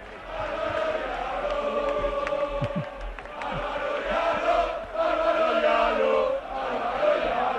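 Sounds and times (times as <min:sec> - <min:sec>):
dense crowd shouting and cheering: 0:00.0 - 0:07.5.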